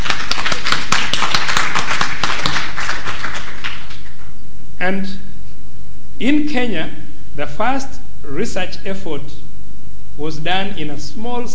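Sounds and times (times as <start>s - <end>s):
audience applause: 0.0s - 4.3s
speech: 4.9s - 5.2s, 6.2s - 9.4s, 10.2s - 11.5s.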